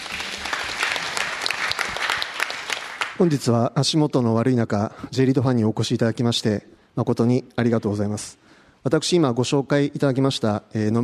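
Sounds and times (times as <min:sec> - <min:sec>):
audience applause: 0:00.0 - 0:03.4
speech: 0:03.2 - 0:11.0.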